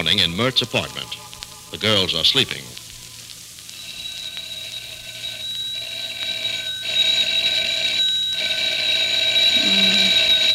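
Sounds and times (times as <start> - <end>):
speech: 0.0 - 2.8
telephone ringing: 3.8 - 10.5.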